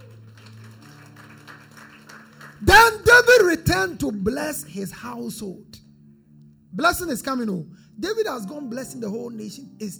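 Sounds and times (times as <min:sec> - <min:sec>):
audience clapping: 0:00.0 - 0:03.5
speech: 0:03.7 - 0:05.8, 0:06.8 - 0:09.9.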